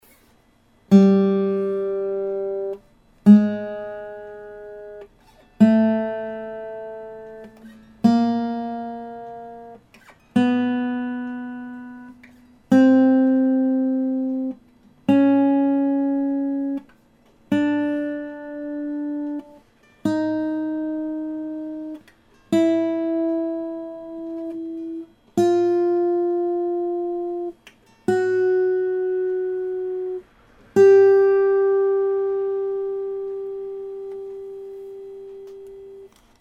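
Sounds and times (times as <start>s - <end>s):
Yamaha guitar vibration: 0.9s - 36.4s.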